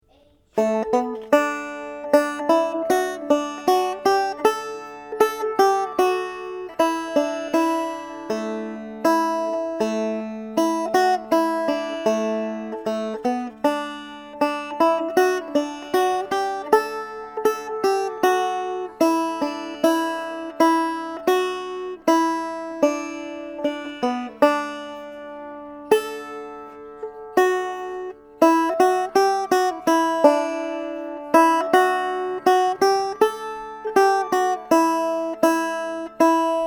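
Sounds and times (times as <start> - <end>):
simple melody: 0.6 - 36.6.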